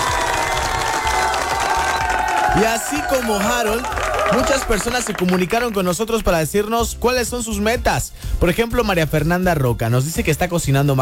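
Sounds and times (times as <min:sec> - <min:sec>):
crowd applauding and cheering: 0:00.0 - 0:06.2
voices shouting: 0:00.1 - 0:05.0
speech: 0:02.6 - 0:11.0.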